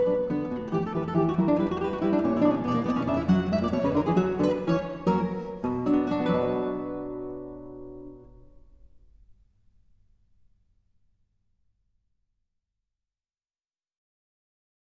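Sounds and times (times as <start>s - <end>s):
trio sonata allegro movement: 0.0s - 8.3s.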